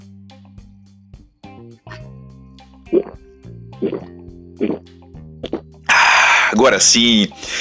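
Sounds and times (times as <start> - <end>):
sipping water: 2.9 - 3.2, 3.8 - 6.8
speech: 2.9 - 5.0, 6.6 - 7.6.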